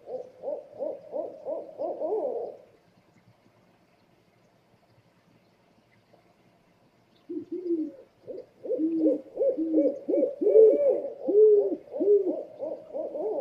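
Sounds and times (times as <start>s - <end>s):
owl hooting: 0.0s - 2.6s, 7.3s - 13.3s.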